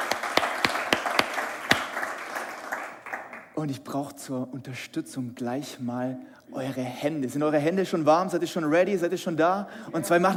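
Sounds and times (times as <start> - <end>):
applause: 0.0 - 3.6
speech: 3.6 - 10.3.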